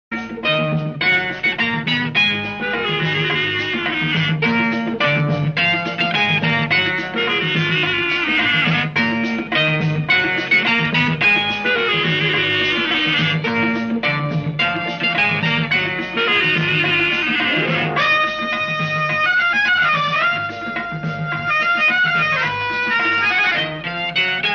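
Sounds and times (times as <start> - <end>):
old Hindi instrumental song ringtone: 0.1 - 24.5.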